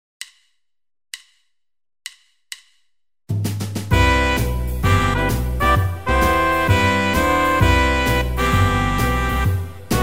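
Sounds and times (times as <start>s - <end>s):
jazz music: 3.8s - 10.0s.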